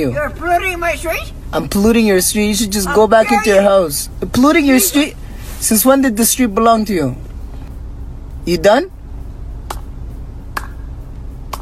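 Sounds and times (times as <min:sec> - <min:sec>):
speech: 0:00.0 - 0:07.3, 0:08.4 - 0:09.0
slow clap by a granny: 0:09.6 - 0:09.9, 0:10.5 - 0:10.9.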